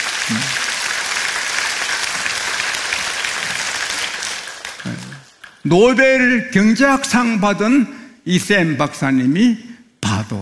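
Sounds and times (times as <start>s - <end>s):
audience applause: 0.0s - 5.7s
speech: 0.3s - 0.5s, 5.7s - 10.4s.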